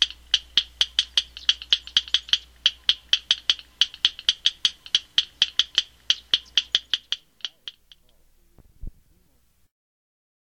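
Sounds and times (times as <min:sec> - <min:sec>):
Yellow rail clicking call: 0:00.0 - 0:08.2.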